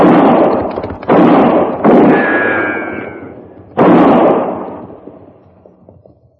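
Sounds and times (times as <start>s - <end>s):
gunshots: 0.0s - 6.0s.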